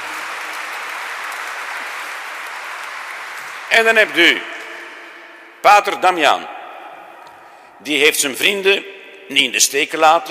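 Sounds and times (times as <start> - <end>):
audience applause: 0.0 - 4.2
speech: 3.7 - 4.5, 5.6 - 6.6, 7.8 - 10.3.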